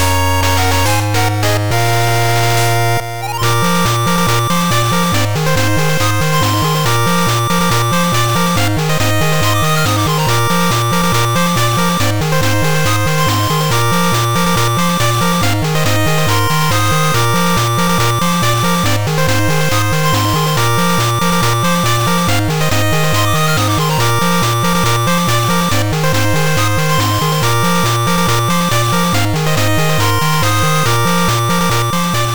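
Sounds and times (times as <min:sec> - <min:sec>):
8-bit victory jingle: 0:00.0 - 0:32.3.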